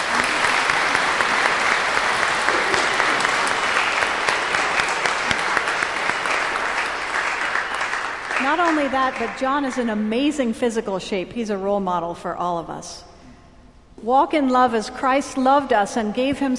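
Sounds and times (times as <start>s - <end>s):
audience applause: 0.0s - 9.4s
speech: 8.6s - 13.1s, 14.0s - 16.5s.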